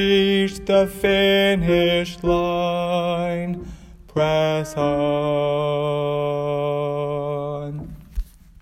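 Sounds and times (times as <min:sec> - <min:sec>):
alto piano: 0:00.0 - 0:08.4.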